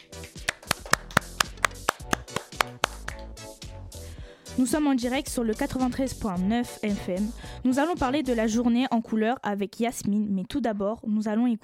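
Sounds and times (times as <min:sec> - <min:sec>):
applause, hands clapping: 0:00.0 - 0:03.6
speech: 0:04.6 - 0:11.6.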